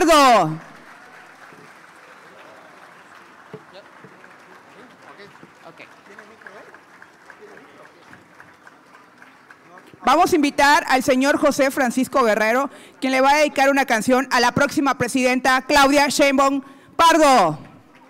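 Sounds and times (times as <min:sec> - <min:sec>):
speech: 0:00.0 - 0:00.7, 0:10.0 - 0:17.6
applause: 0:00.0 - 0:10.6, 0:17.8 - 0:18.0.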